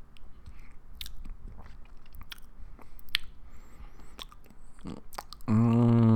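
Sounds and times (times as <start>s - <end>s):
chewing a sugary food: 0.1s - 5.5s.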